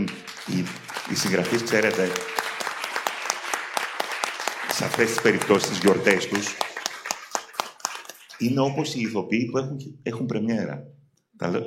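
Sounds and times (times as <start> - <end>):
speech: 0.0 - 2.4, 4.8 - 6.7, 8.4 - 11.6
audience applause: 0.0 - 9.0.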